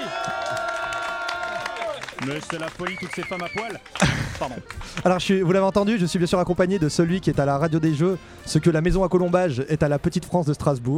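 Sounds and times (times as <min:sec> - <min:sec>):
audience applauding: 0:00.0 - 0:05.2
laughter: 0:00.0 - 0:05.3
speech: 0:02.2 - 0:10.9.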